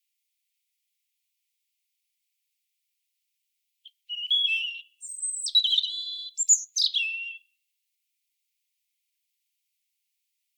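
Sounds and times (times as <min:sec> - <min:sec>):
European robin song: 0:03.8 - 0:07.5.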